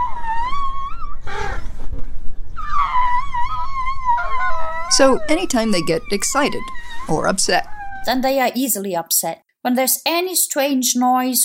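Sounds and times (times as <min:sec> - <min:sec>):
Asian elephant squeaking: 0:00.0 - 0:01.7, 0:02.6 - 0:08.4
speech: 0:05.0 - 0:11.4.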